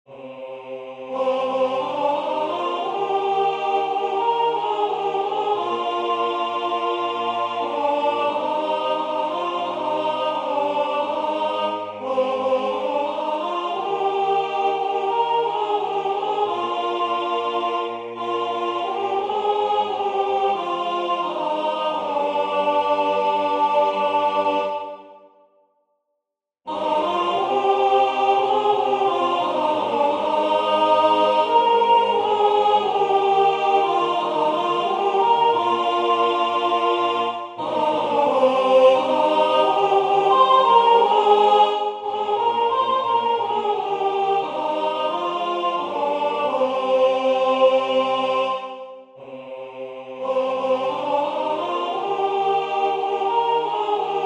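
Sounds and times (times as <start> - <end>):
soprano singing: 0.1 - 25.0, 26.7 - 54.2.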